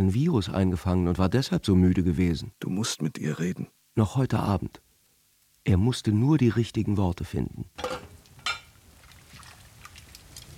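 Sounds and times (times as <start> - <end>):
speech: 0.0 - 4.8, 5.6 - 8.1
rain falling: 7.8 - 10.5.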